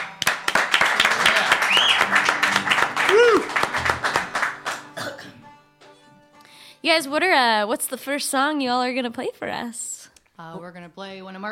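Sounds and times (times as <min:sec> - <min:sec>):
audience applause welcoming a live band: 0:00.0 - 0:05.0
speech: 0:06.9 - 0:11.5.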